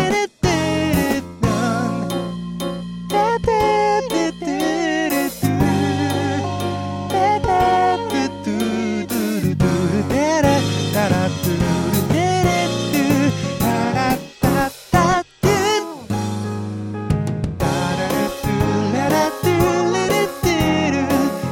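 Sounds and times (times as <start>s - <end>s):
guitar: 0.0s - 21.5s.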